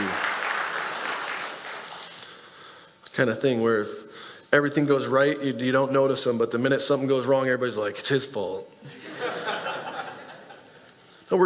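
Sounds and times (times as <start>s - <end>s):
audience applause: 0.0s - 2.0s
speech: 3.2s - 9.1s, 11.3s - 11.4s
laughter: 8.8s - 10.9s.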